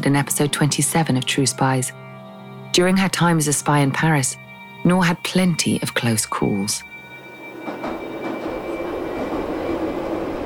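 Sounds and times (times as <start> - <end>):
speech: 0.0 - 2.0, 2.8 - 6.9
metro train rumbling on rails: 7.2 - 10.4.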